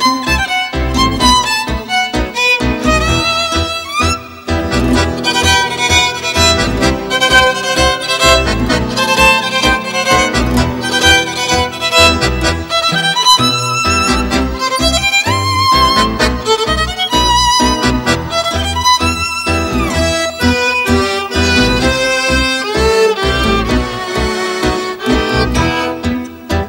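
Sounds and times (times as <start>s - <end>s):
tango ensemble playing: 0.0s - 26.6s.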